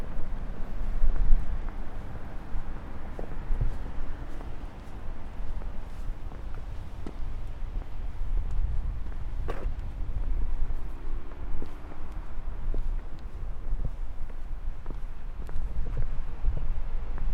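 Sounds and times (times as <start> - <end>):
beach ambience in Brighton UK: 0.0 - 17.3.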